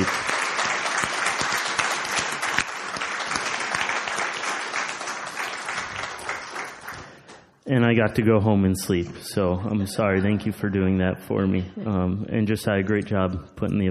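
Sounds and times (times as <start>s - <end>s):
crowd applause: 0.0s - 7.5s
speech: 7.7s - 13.8s.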